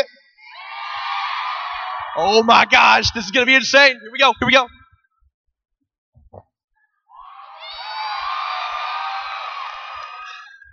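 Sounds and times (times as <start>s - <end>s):
speech: 2.2s - 4.8s
audience applause: 7.6s - 10.6s.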